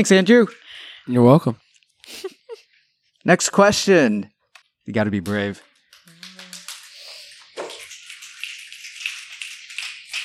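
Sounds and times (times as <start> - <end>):
speech: 0.0 - 2.4, 3.2 - 5.7
audience finger snapping at a live event: 5.2 - 10.2.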